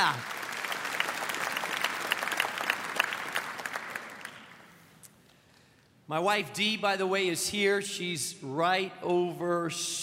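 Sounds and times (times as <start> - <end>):
speech: 0.0 - 0.3, 6.1 - 10.0
crowd applauding: 0.0 - 4.8.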